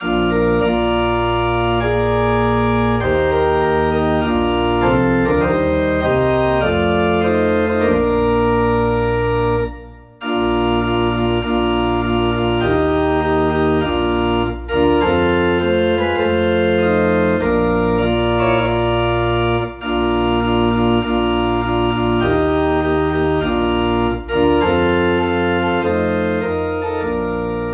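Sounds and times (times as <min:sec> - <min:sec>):
organ piece in B flat: 0:00.0 - 0:27.7.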